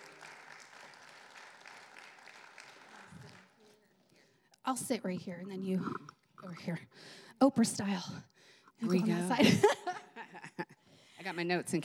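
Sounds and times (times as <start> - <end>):
audience clapping: 0.0 - 4.2
speech: 4.7 - 10.0, 11.2 - 11.8
laughter: 9.1 - 10.9.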